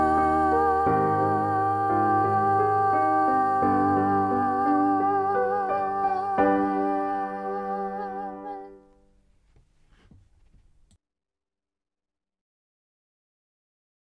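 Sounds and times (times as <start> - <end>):
choir with soprano: 0.0 - 9.0.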